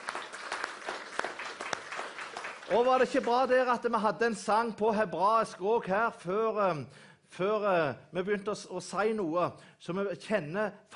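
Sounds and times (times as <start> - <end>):
audience applause: 0.0 - 3.6
speech: 2.7 - 10.9.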